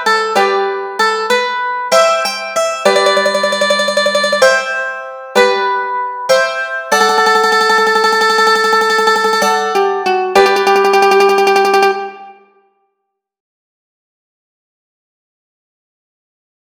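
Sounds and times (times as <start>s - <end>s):
mandolin melody and chords: 0.0s - 12.6s.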